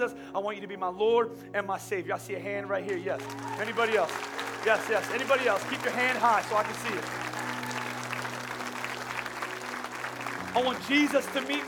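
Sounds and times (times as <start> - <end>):
speech: 0.0 - 7.3, 10.6 - 11.6
audience clapping: 2.9 - 11.6.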